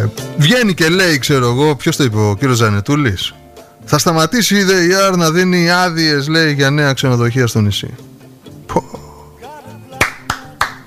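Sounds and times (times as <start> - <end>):
speech: 0.1 - 8.1
hand clapping: 9.9 - 10.8.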